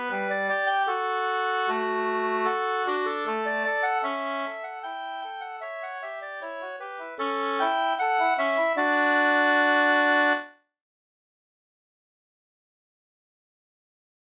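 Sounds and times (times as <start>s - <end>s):
two-part bridal march: 0.0s - 10.4s.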